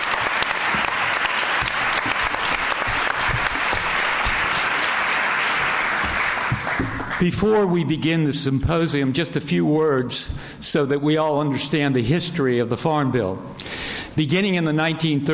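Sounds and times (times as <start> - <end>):
audience applause at a Farm Bill symposium welcoming speakers and moderator: 0.0 - 7.3
speech: 7.2 - 15.3.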